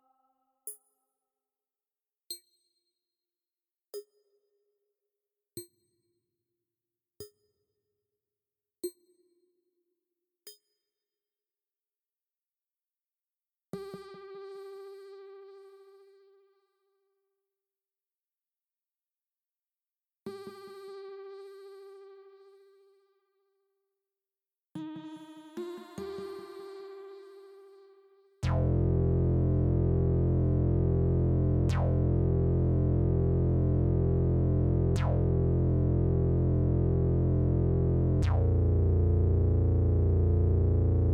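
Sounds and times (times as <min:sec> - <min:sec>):
future ambient trap music at 147 BPM: 0:28.4 - 0:41.1.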